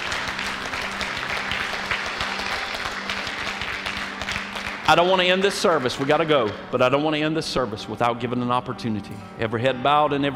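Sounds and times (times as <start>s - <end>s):
audience applause: 0.0s - 6.7s
speech: 4.9s - 10.3s.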